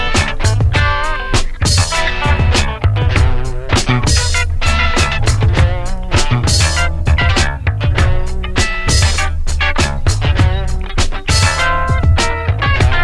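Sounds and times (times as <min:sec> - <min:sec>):
retro music jam: 0:00.0 - 0:13.0.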